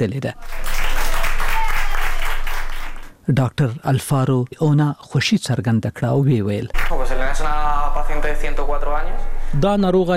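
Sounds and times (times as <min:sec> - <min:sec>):
speech: 0:00.0 - 0:00.7, 0:03.3 - 0:10.1
doctors and nurses in a Madrid hospital applauding: 0:00.4 - 0:03.2, 0:06.8 - 0:07.4.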